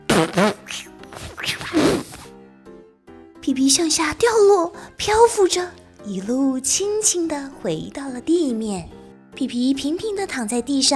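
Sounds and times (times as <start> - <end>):
loud fart: 0.0 - 2.3
speech: 0.2 - 0.9, 3.5 - 10.9.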